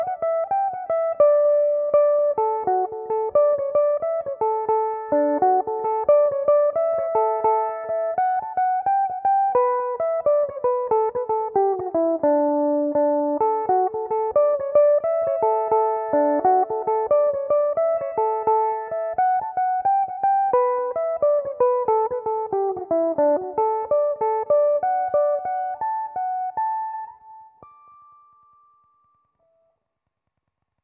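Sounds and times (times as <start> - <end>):
Belmuse EM-190 electric mandolin playing an Irish jig in D major: 0.0 - 28.2.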